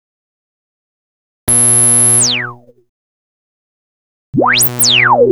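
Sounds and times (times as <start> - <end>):
tones: 1.5 - 2.7, 4.4 - 5.2.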